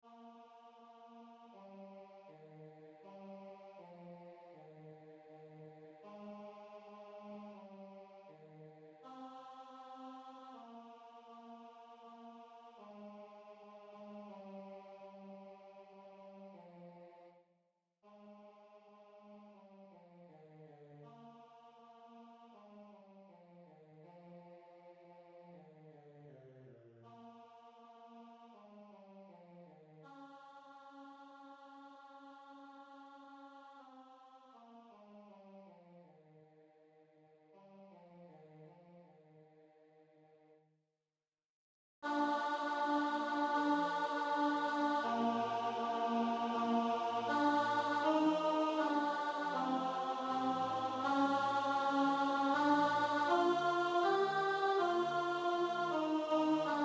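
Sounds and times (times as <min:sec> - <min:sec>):
alto singing a Benedictus: 0:42.1 - 0:56.8.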